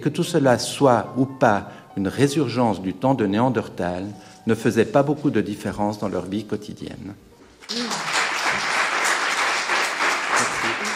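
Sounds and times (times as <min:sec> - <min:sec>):
speech: 0:00.0 - 0:07.3
audience applause: 0:07.7 - 0:10.9.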